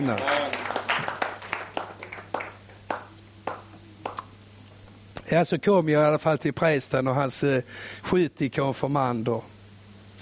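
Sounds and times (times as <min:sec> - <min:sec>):
speech: 0:00.0 - 0:00.6, 0:05.3 - 0:09.6
audience applause: 0:00.0 - 0:04.2.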